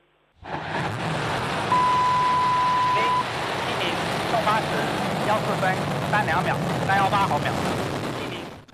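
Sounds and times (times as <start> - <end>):
steady tone: 0.0 - 6.1
Long March 7 Y11 rocket carrying the Tianzhou-10 cargo spacecraft igniting and lifting off: 0.4 - 8.7.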